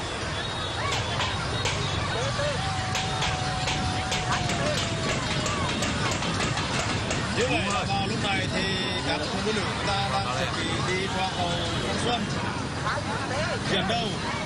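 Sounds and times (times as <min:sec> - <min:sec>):
spectators cheering boats at a boat race near the Phong Xuân bridge: 0:00.0 - 0:14.4
drumming at a boat race: 0:00.8 - 0:12.3
speech: 0:07.9 - 0:14.4.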